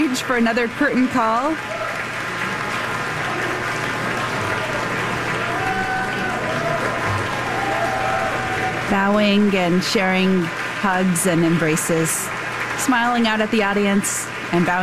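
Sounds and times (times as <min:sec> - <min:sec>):
concert audience standing ovation applause: 0:00.0 - 0:14.8
speech: 0:00.2 - 0:01.8, 0:08.9 - 0:14.8.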